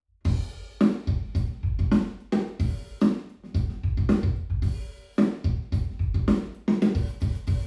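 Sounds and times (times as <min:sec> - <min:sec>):
binaural drums: 0:00.2 - 0:07.6.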